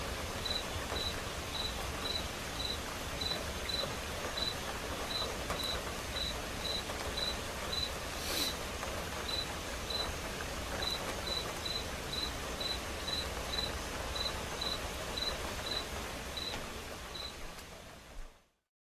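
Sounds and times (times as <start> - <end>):
quiet rain pattering: 0.0 - 18.7
cricket chirping: 0.4 - 7.9, 9.3 - 10.1, 10.8 - 16.6, 17.2 - 17.4.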